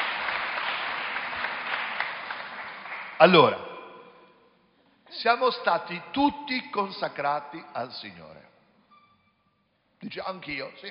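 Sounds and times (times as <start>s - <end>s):
audience applause: 0.0s - 3.6s
speech: 3.2s - 3.6s, 5.1s - 8.5s, 10.0s - 10.8s.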